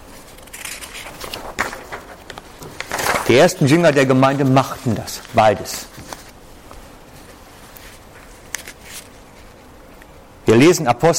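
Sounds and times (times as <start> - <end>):
book page turning: 0.1 - 6.4, 7.6 - 9.6
speech: 3.3 - 6.1, 10.6 - 11.1.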